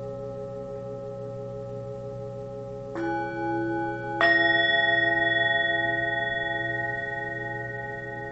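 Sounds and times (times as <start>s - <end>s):
bells ringing: 3.0s - 8.3s.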